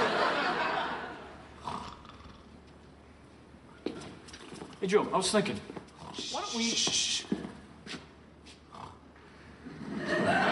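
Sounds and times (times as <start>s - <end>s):
laughter: 0.0s - 1.4s, 9.7s - 10.5s
snoring: 1.6s - 2.5s
speech: 4.8s - 5.8s, 6.5s - 7.4s.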